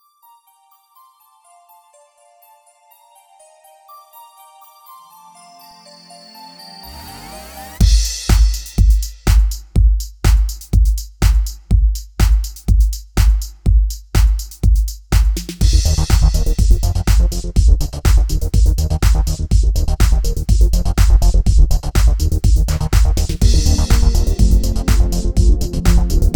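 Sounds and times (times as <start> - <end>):
rhythm stems: 7.8 - 26.3.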